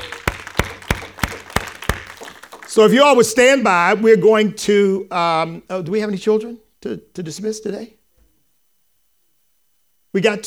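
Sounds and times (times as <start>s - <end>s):
church congregation clapping to welcome live stream viewers: 0.0s - 3.4s
speech: 2.8s - 8.0s, 10.1s - 10.4s.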